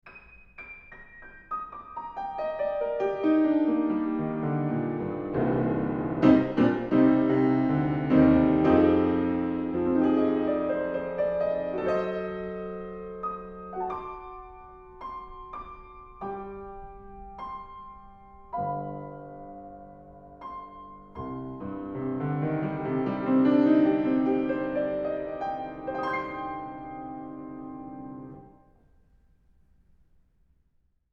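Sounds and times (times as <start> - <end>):
piano: 0.0 - 30.6.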